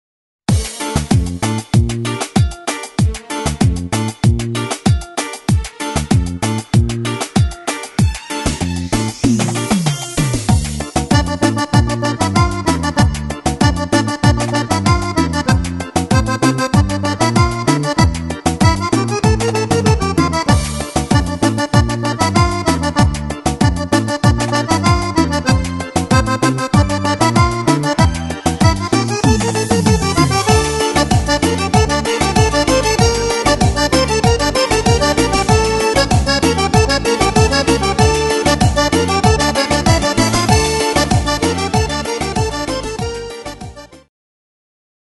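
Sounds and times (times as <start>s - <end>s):
cumbia remix music: 0.5s - 44.1s.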